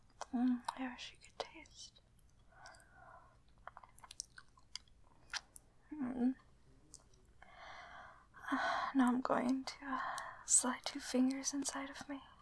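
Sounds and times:
food being chewed: 0:00.1 - 0:05.7
speech: 0:00.3 - 0:02.0, 0:05.9 - 0:06.4, 0:08.5 - 0:12.3
breathy noise: 0:02.5 - 0:03.4, 0:07.4 - 0:08.9, 0:10.0 - 0:10.4.

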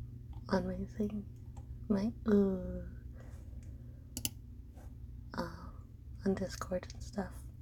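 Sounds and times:
speech: 0:00.5 - 0:03.0, 0:06.2 - 0:07.4
computer mouse clicking: 0:04.2 - 0:04.4.

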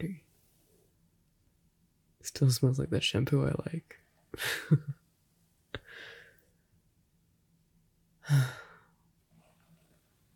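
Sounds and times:
speech: 0:02.2 - 0:05.0, 0:08.3 - 0:08.6
person yawning: 0:08.3 - 0:08.8.

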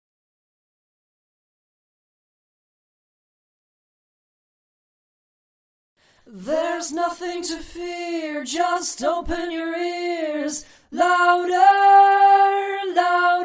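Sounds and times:
a cappella singing: 0:06.2 - 0:13.4.

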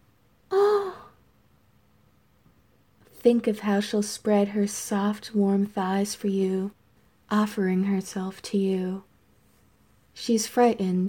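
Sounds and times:
frightened nervous little gasp: 0:00.5 - 0:01.2
speech: 0:03.2 - 0:09.1, 0:10.2 - 0:11.0.

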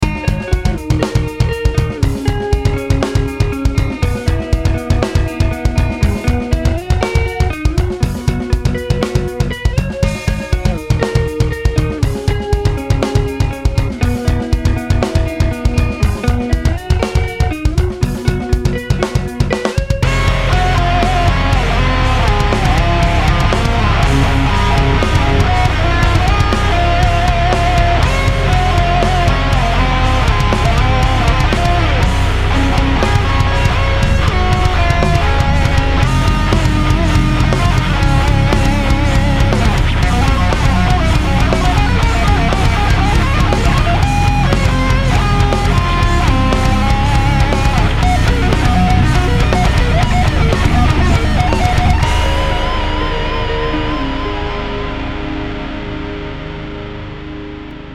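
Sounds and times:
musical riff: 0:00.0 - 0:57.9.

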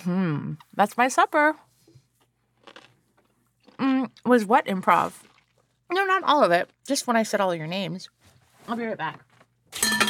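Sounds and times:
speech: 0:00.0 - 0:01.7, 0:03.8 - 0:05.3, 0:05.9 - 0:10.0
chewing: 0:01.9 - 0:06.9
biting and crunching a pickle: 0:02.5 - 0:04.3, 0:04.9 - 0:05.8.

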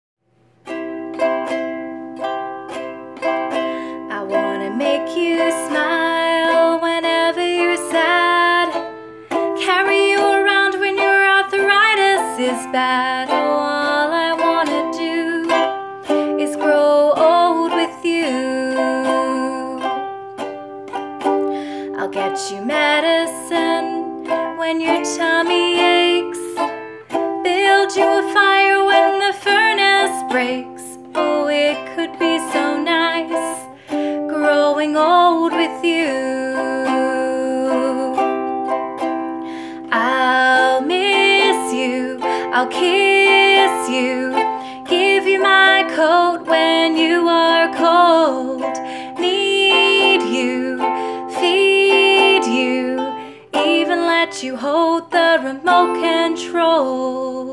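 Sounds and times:
person singing: 0:00.7 - 0:57.5.

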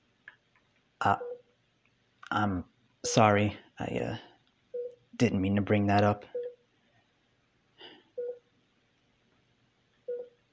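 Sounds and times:
speech: 0:01.0 - 0:01.3, 0:02.3 - 0:04.3, 0:05.2 - 0:06.4
heart monitor machine beeping: 0:01.1 - 0:01.4, 0:04.8 - 0:05.0, 0:06.3 - 0:06.6, 0:08.2 - 0:08.4, 0:10.1 - 0:10.4.

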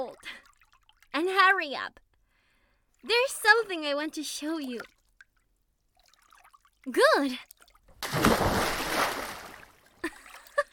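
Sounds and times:
speech: 0:01.5 - 0:02.0, 0:03.0 - 0:05.0, 0:06.8 - 0:07.5
splash of someone jumping into water: 0:08.0 - 0:09.8.

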